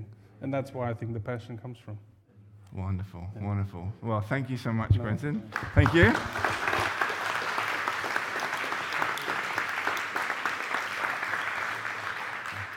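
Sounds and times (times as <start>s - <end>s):
speech: 0.4s - 2.1s, 2.7s - 6.6s
audience applause: 5.5s - 12.7s.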